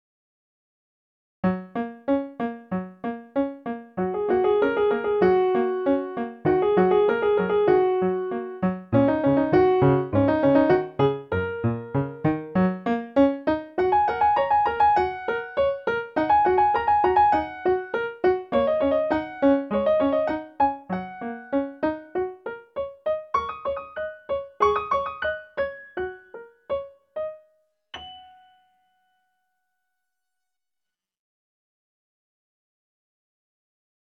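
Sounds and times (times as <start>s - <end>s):
piano etude: 1.4s - 29.3s.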